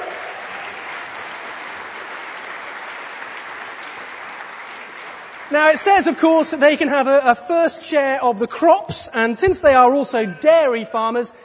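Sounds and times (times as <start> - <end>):
crowd applauding: 0.0 - 6.6
speech: 5.5 - 11.4.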